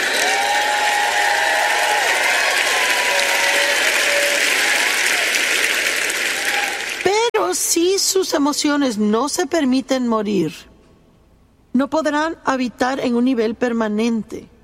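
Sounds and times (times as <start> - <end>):
faint voices and cheers: 0.0 - 7.1
audience clapping loudly: 0.0 - 7.2
speech: 8.2 - 10.7, 11.8 - 14.5.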